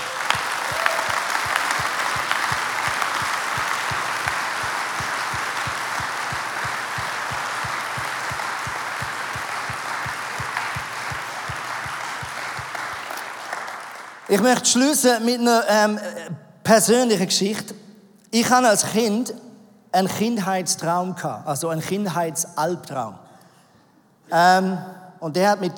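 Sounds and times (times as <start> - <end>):
audience applause: 0.0 - 14.4
speech: 14.3 - 23.2, 24.3 - 25.7.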